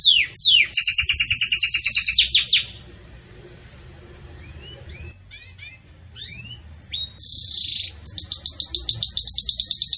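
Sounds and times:
Belgian canary singing a trill: 0:00.0 - 0:02.8, 0:04.4 - 0:09.9.

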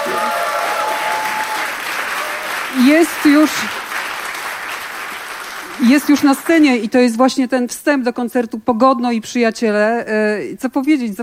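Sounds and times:
concert audience applause for a band taking the stage: 0:00.0 - 0:06.8
speech: 0:02.8 - 0:03.8, 0:05.8 - 0:11.2.

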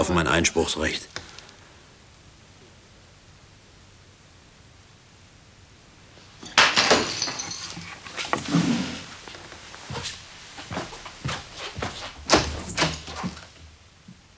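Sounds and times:
speech: 0:00.0 - 0:01.2
objects knocking and clattering as things settle: 0:06.2 - 0:13.6
flour jar crashing on the floor: 0:06.4 - 0:09.2.

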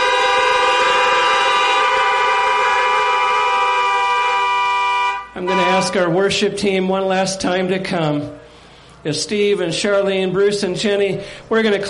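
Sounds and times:
car horns honking: 0:00.0 - 0:06.4
speech: 0:05.8 - 0:08.4, 0:09.0 - 0:11.8.

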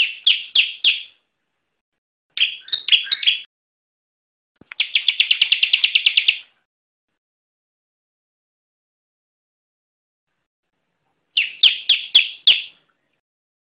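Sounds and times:
bar-winged prinia song with rapid trill and ringing chirps: 0:00.0 - 0:01.2, 0:02.4 - 0:03.5, 0:04.7 - 0:06.5, 0:11.4 - 0:12.8.

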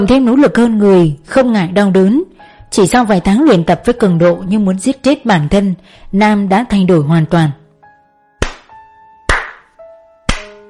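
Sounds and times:
speech: 0:00.0 - 0:07.6
hand clapping: 0:08.4 - 0:10.6.

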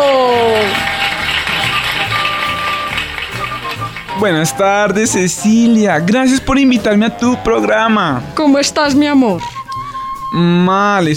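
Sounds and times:
audience applause: 0:00.0 - 0:04.7
speech: 0:04.2 - 0:09.5, 0:10.3 - 0:11.1.

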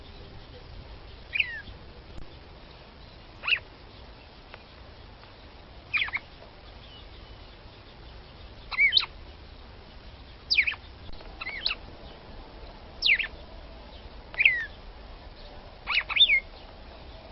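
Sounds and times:
red-cowled cardinal female singing short sweeping whistles: 0:03.4 - 0:03.6, 0:05.9 - 0:07.5, 0:08.7 - 0:09.1, 0:10.5 - 0:10.8, 0:11.4 - 0:11.8, 0:13.0 - 0:13.3, 0:14.4 - 0:14.7, 0:15.9 - 0:16.5.

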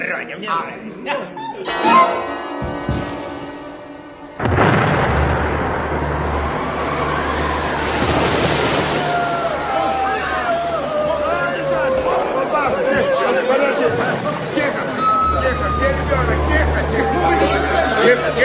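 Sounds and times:
speech: 0:00.2 - 0:02.7
laughter: 0:00.8 - 0:02.3, 0:09.0 - 0:18.4
thunder clap from nearby lightning strike: 0:04.4 - 0:09.7.

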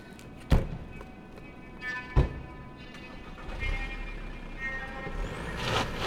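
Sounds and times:
car driving off on gravel: 0:03.2 - 0:06.0.

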